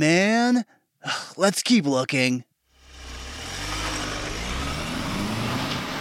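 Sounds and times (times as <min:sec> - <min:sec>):
speech: 0:00.0 - 0:02.5
car engine and road noise on a long drive: 0:02.7 - 0:05.9.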